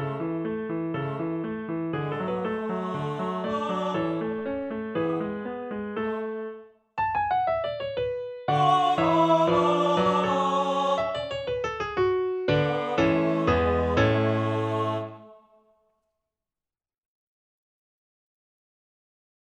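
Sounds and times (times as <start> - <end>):
art song for voice and piano: 0.0 - 15.4.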